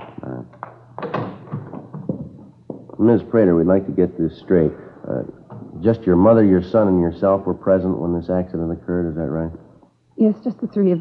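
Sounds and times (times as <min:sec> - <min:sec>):
knocking on a front door: 0:01.0 - 0:03.0
speech: 0:03.0 - 0:09.6, 0:10.2 - 0:10.9.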